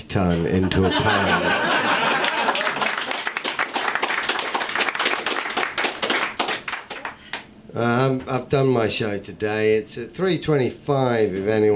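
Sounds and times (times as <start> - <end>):
speech: 0.1 - 1.8, 7.8 - 11.7
laughter: 0.3 - 3.2
audience applause: 1.7 - 7.4.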